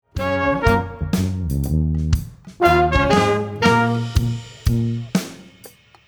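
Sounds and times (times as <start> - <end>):
solo brass instrument: 0.0 - 1.7, 2.6 - 5.1.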